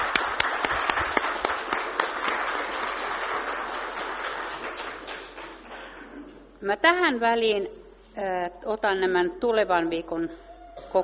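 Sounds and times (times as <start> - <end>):
audience applause for the choir: 0.0 - 6.4
speech: 6.6 - 11.0.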